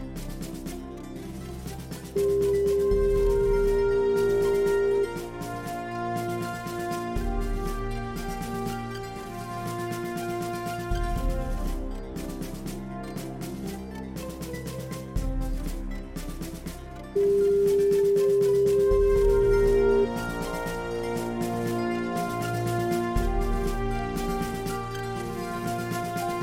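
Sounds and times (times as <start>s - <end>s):
fanfare: 2.2s - 12.0s, 17.2s - 26.4s.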